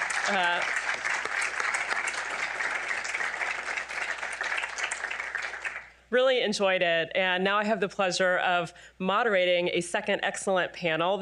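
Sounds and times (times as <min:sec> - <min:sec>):
audience applause: 0:00.0 - 0:05.9
speech: 0:00.3 - 0:00.8, 0:06.1 - 0:11.1.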